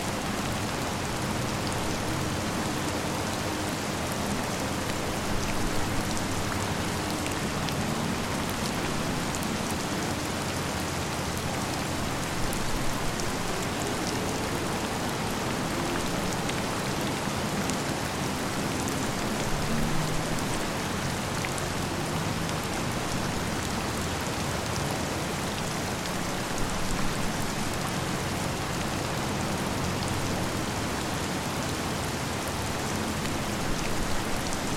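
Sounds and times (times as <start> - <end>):
heavy rainstorm in a city: 0.0 - 34.7.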